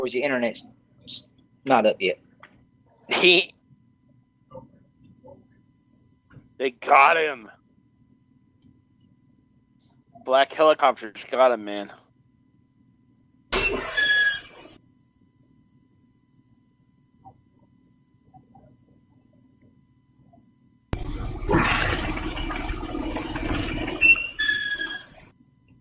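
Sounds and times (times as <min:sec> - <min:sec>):
speech: 0:00.0 - 0:02.2, 0:03.1 - 0:03.6, 0:06.6 - 0:07.6, 0:10.2 - 0:12.0
homemade pulley workout setup in use: 0:21.0 - 0:25.3.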